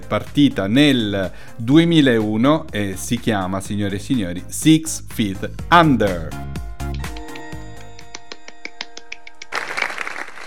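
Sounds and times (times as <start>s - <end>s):
speech: 0.1s - 6.5s
applause: 8.2s - 10.4s.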